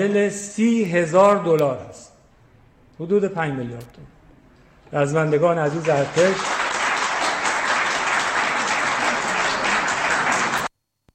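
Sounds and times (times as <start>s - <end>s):
speech: 0.0s - 2.1s, 3.0s - 4.1s, 4.9s - 6.6s
crowd applause after a cash gift is announced at a speech: 5.3s - 10.7s.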